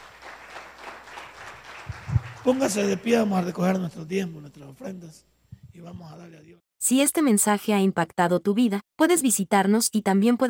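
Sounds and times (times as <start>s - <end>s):
audience applauding: 0.0s - 3.1s
speech: 2.4s - 10.4s
low thumps: 5.5s - 6.1s.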